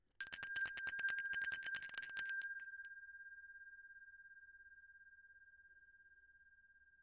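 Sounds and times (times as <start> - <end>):
metal bell ringing: 0.2 - 3.0.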